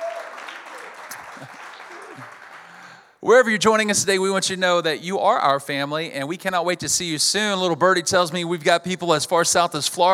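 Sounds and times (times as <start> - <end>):
church congregation at the Nampa Civic Center clapping: 0.0 - 3.2
speech: 1.4 - 1.6, 3.2 - 10.1.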